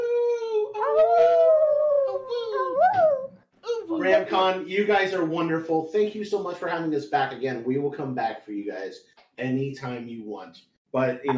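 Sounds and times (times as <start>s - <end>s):
human voice imitating a wolf howl: 0.0s - 4.2s
speech: 4.1s - 11.3s.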